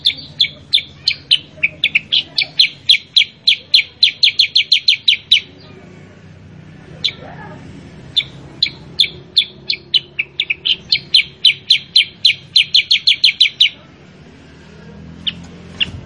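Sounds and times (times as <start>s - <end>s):
Sooty-headed bulbul calls: 0.0s - 5.8s, 7.0s - 7.4s, 8.1s - 13.8s, 15.2s - 16.0s.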